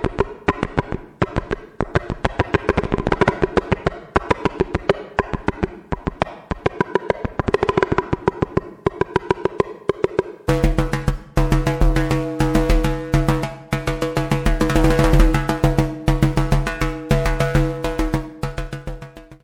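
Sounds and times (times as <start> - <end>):
hand drumming: 0.2 - 19.4.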